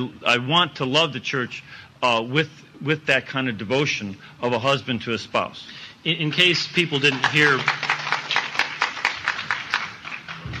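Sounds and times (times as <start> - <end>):
speech: 0.0 - 7.8
audience applause: 7.0 - 10.5.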